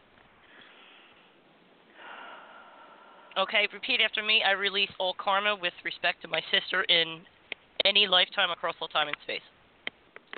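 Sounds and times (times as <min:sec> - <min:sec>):
deep breath: 0:00.4 - 0:03.4
speech: 0:03.4 - 0:09.6.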